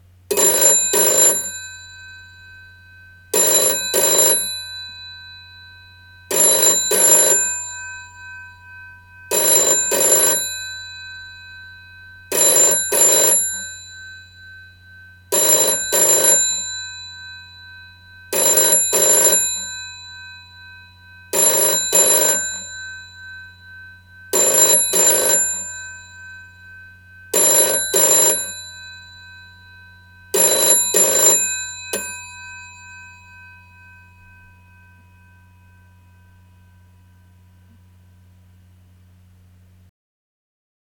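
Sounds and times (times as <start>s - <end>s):
British GPO Telephone Model 706 ringing: 0.3s - 2.2s, 3.3s - 5.5s, 6.2s - 8.2s, 9.3s - 11.3s, 12.3s - 14.2s, 15.3s - 17.6s, 18.3s - 20.6s, 21.3s - 23.4s, 24.3s - 26.4s, 27.3s - 29.7s, 30.3s - 34.3s.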